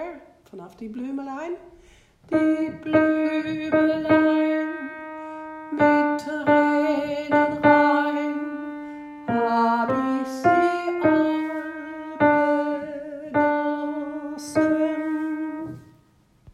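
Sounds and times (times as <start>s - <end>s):
alto voice singing: 2.3s - 16.0s.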